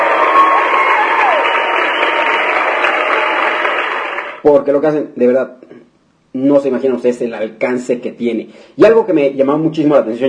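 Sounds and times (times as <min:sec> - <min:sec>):
crowd applauding: 0:00.0 - 0:04.4
speech: 0:04.4 - 0:05.7, 0:06.3 - 0:10.2.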